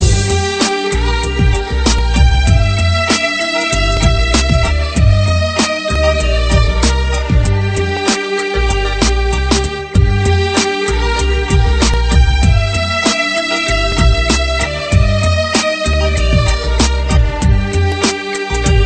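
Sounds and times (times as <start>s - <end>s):
hip hop music: 0.0s - 18.8s.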